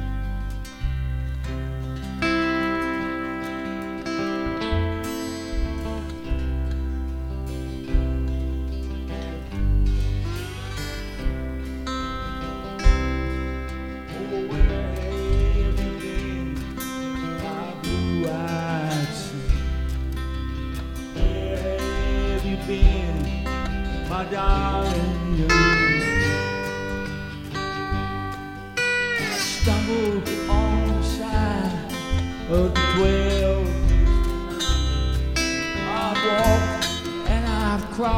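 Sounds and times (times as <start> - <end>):
lap steel guitar: 0.0 - 38.1.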